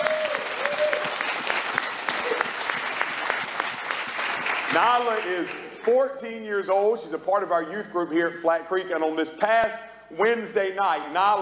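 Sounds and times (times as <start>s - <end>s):
audience applauding: 0.0s - 6.0s
speech: 4.8s - 11.4s.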